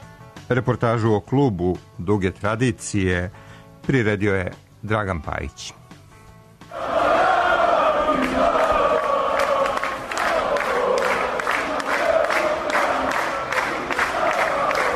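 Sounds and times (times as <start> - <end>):
speech: 0.5 - 5.8
thousands of football fans chanting in Krajina Square, Banja Luka: 6.7 - 14.9.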